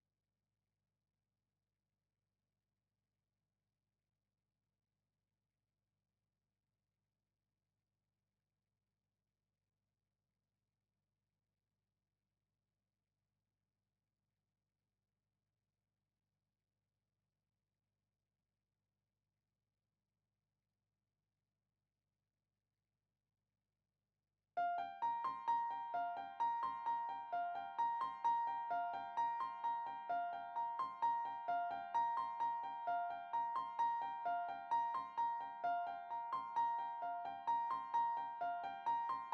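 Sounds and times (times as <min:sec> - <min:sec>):
synths and keys: 0:24.6 - 0:39.3.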